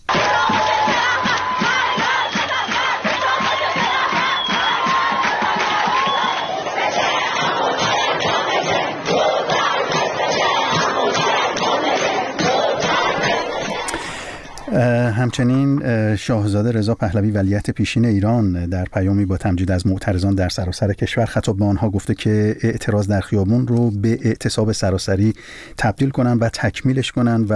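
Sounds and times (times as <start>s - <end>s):
students protesting: 0.0s - 15.4s
speech: 14.8s - 27.5s.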